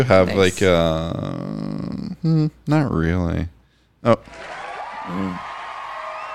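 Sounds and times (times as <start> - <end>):
speech: 0.0 - 5.5
canned crowd applause and cheering: 4.2 - 6.3.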